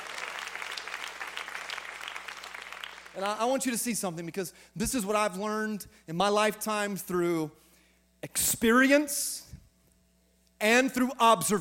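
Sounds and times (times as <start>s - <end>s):
crowd applause: 0.0s - 3.2s
speech: 3.2s - 7.6s, 8.2s - 9.5s, 10.6s - 11.5s.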